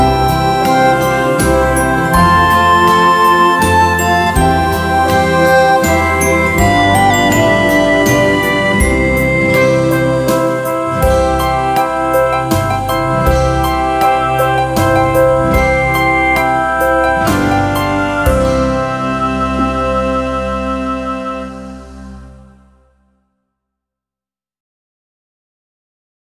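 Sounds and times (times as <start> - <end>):
lullaby melody played on a recorder: 0.0 - 22.9.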